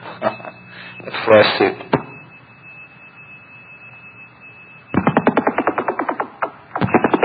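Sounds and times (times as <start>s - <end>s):
thin steady whine: 0.0s - 7.2s
speech: 1.0s - 1.8s
pulsing beat tones from two phones: 2.2s - 7.2s.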